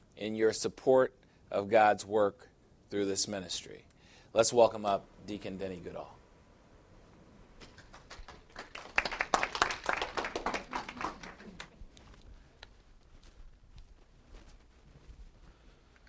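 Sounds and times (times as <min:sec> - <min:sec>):
speech: 0:00.2 - 0:06.2
church congregation clapping during a Christian service: 0:07.6 - 0:12.0.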